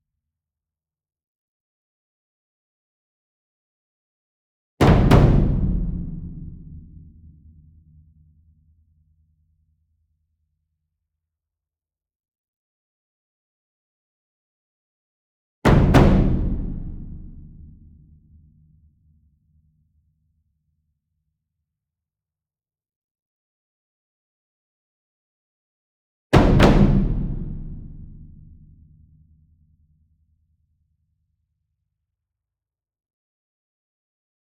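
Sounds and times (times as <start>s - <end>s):
medium double concert bass drum: 4.8s - 6.8s, 15.7s - 17.8s, 26.4s - 28.6s.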